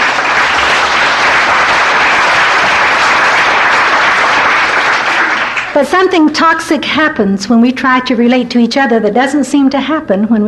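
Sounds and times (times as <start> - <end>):
audience applause: 0.0 - 5.8
speech: 5.8 - 10.4.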